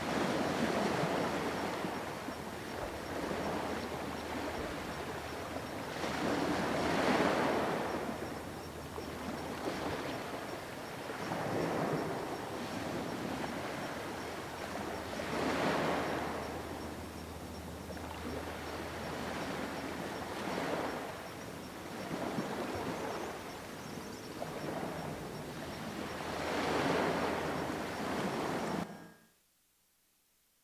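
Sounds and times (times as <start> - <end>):
distant surf: 0.0 - 29.2.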